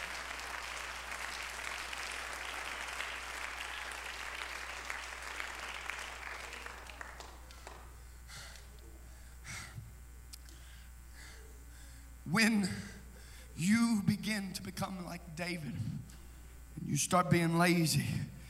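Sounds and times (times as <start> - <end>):
audience hand clapping applause: 0.0 - 8.7
speech: 12.3 - 12.9, 13.6 - 16.2, 16.9 - 18.4.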